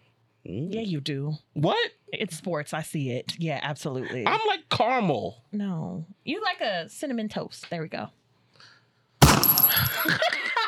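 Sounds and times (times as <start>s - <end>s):
speech: 0.5s - 8.7s, 9.7s - 10.4s
gunshot sound effect: 9.2s - 9.6s.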